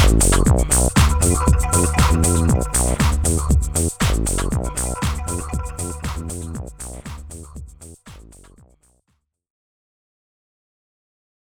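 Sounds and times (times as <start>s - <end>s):
trance music: 0.0s - 8.3s.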